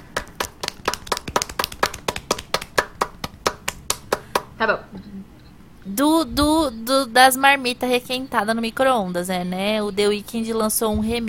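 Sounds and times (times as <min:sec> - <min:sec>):
hosts clapping, a round of applause: 0:00.0 - 0:04.6
speech: 0:04.6 - 0:11.2.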